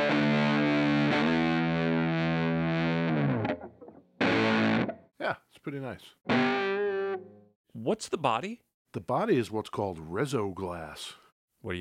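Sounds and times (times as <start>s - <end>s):
old electric guitar played with distortion: 0.0s - 5.0s, 6.3s - 7.4s
speech: 5.3s - 6.6s, 7.7s - 11.8s.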